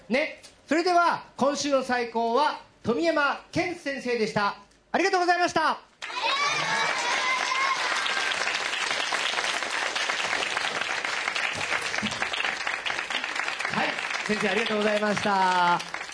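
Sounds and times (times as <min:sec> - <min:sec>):
speech: 0:00.1 - 0:06.2, 0:14.3 - 0:16.0
children applauding: 0:06.0 - 0:16.1.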